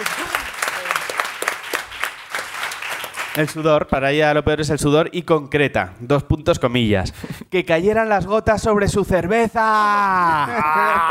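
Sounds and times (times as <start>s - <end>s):
applause: 0.0s - 3.7s
speech: 3.4s - 11.0s
laughter: 9.8s - 11.0s.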